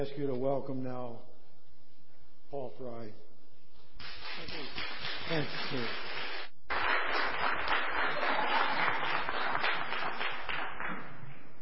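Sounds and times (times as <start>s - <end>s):
speech: 0.0s - 1.3s, 2.5s - 3.3s, 4.4s - 6.1s
audience applause: 4.6s - 11.3s.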